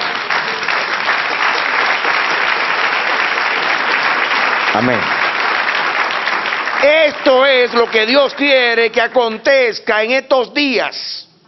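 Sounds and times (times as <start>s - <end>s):
audience applause: 0.0s - 8.8s
speech: 4.8s - 5.2s, 6.8s - 11.3s.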